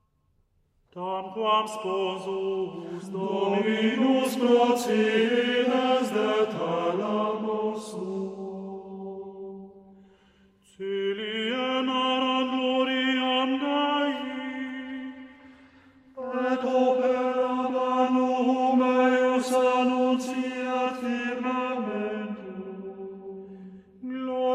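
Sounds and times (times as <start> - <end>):
Gregorian chant antiphon and psalm: 0.9 - 10.0, 10.6 - 24.5.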